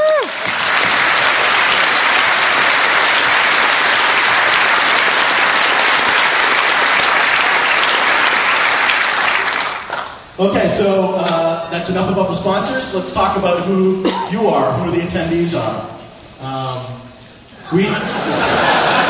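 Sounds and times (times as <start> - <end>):
conference audience applause thanking the sponsors: 0.0 - 10.3, 18.1 - 19.0
speech: 10.4 - 17.1, 17.7 - 18.9
laughter: 17.6 - 19.0.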